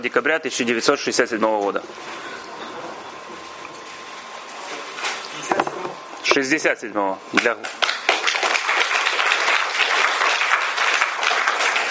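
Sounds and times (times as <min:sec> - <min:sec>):
speech: 0:00.0 - 0:02.4, 0:06.4 - 0:07.8
audience applause: 0:07.8 - 0:11.9.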